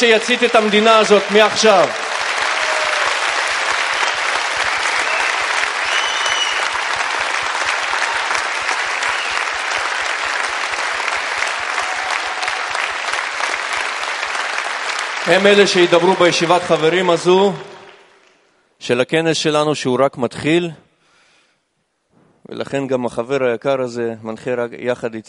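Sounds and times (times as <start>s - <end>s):
speech: 0.0s - 2.2s, 15.2s - 17.7s, 18.8s - 20.9s, 22.4s - 25.2s
audience applause: 0.0s - 18.4s.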